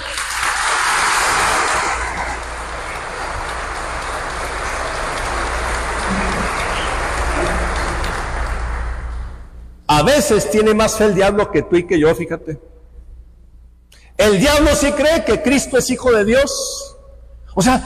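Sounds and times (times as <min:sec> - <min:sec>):
audience applause: 0:00.0 - 0:09.5
speech: 0:10.0 - 0:12.7, 0:14.2 - 0:16.9, 0:17.6 - 0:17.8.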